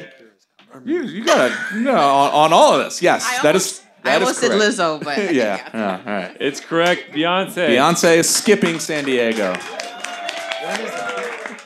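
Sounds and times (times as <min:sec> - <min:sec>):
speech: 0:00.7 - 0:09.9, 0:10.6 - 0:11.3
laughter: 0:01.0 - 0:02.8, 0:04.1 - 0:09.6
audience clapping: 0:07.8 - 0:11.6.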